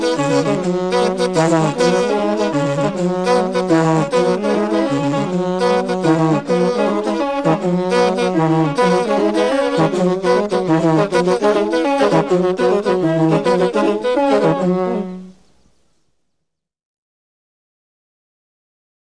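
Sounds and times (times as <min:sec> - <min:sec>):
royal horn ensemble playing in Uganda: 0:00.0 - 0:15.3.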